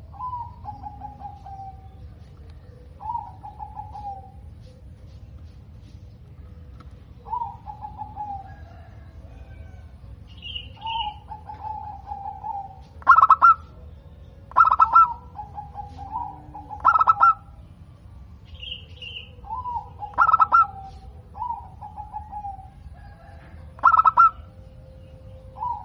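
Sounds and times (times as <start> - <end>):
zebra dove cooing with stuttering pulsed notes: 0.0 - 5.2, 7.2 - 9.9, 10.5 - 13.8, 14.5 - 17.7, 19.1 - 24.7, 25.4 - 25.8.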